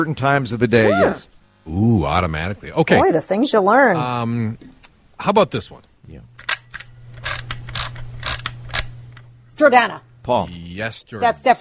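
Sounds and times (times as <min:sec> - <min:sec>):
speech: 0:00.0 - 0:06.5, 0:09.6 - 0:11.5
film winding in an old school camera: 0:06.4 - 0:08.9.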